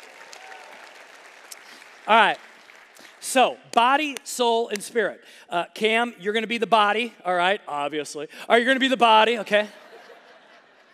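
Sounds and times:
audience applause: 0.0s - 3.2s
speech: 2.1s - 2.4s, 3.2s - 9.8s
laughter: 9.5s - 10.9s.

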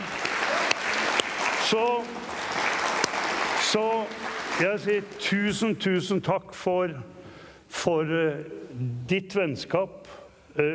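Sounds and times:
audience applause: 0.0s - 5.6s
speech: 1.7s - 2.4s, 3.7s - 7.2s, 7.8s - 10.7s.

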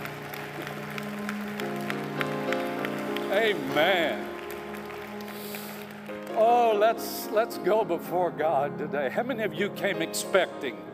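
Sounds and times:
church congregation applause at a Sunday service: 0.0s - 7.0s
speech: 3.4s - 4.3s, 6.4s - 10.9s.

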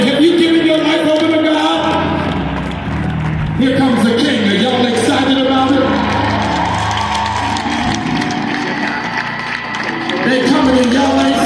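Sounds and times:
audience clapping: 0.0s - 11.4s.

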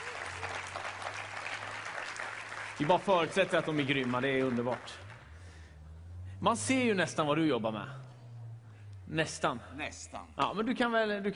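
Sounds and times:
audience clapping: 0.0s - 5.6s
speech: 2.8s - 5.1s, 6.4s - 8.1s, 9.1s - 11.3s.

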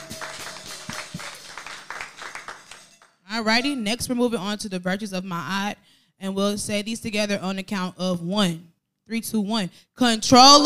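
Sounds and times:
hand claps: 0.0s - 3.2s
speech: 3.4s - 10.6s.

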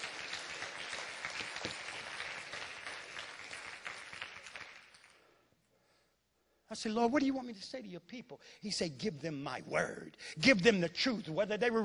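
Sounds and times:
audience applause: 0.0s - 5.2s
speech: 6.7s - 11.8s.

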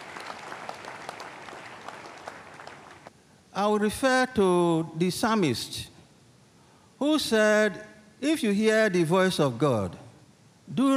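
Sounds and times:
audience applause: 0.0s - 3.1s
speech: 3.6s - 5.9s, 7.0s - 10.0s, 10.7s - 10.9s.

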